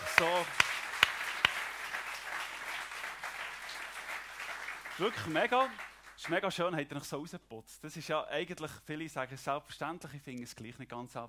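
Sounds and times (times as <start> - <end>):
audience applause: 0.0 - 6.4
speech: 0.2 - 0.6, 5.0 - 11.2.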